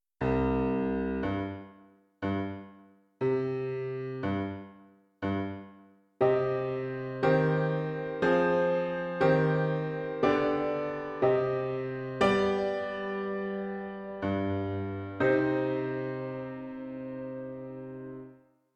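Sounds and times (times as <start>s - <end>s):
piano: 0.2s - 18.5s.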